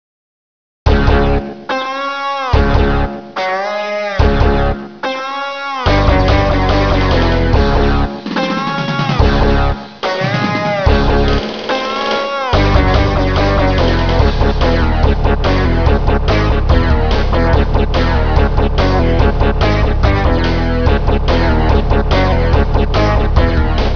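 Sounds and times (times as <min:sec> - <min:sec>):
battle music: 0:00.9 - 0:23.9.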